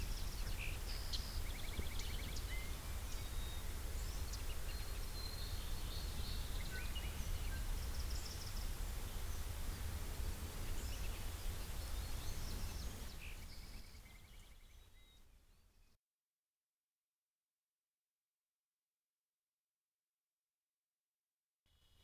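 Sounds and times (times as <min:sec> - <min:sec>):
birds: 0:00.0 - 0:15.9.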